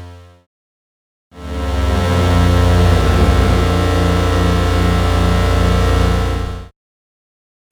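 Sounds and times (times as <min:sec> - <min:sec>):
modular synthesizer: 0:01.5 - 0:06.6.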